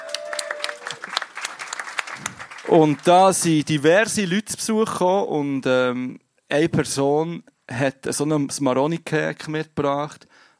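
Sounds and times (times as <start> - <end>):
audience applause: 0.0 - 3.5
speech: 2.7 - 10.3.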